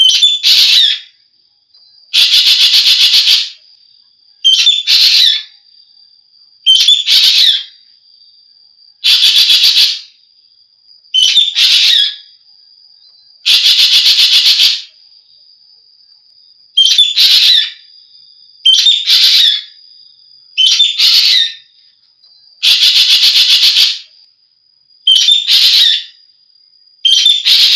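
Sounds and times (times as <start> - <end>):
Javan green magpie whistles and rasps: 0.0 - 1.1, 2.2 - 3.6, 4.4 - 5.5, 6.7 - 7.8, 9.0 - 10.1, 11.2 - 12.3, 13.5 - 14.9, 16.8 - 17.9, 18.7 - 19.8, 20.6 - 21.7, 22.6 - 24.1, 25.1 - 26.2, 27.1 - 27.7.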